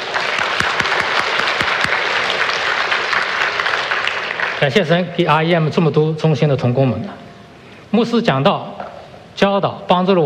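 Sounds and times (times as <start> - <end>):
audience applause: 0.0 - 4.8
speech: 4.6 - 7.2, 7.9 - 8.8, 9.4 - 10.2.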